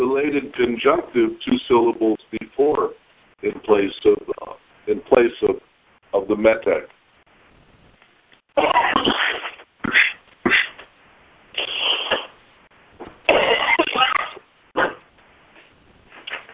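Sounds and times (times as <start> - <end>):
speech: 0.2 - 5.6, 6.3 - 7.0
man clearing throat: 8.6 - 10.8, 13.3 - 15.0
man coughing to clear his lungs: 8.6 - 10.8, 13.3 - 15.0.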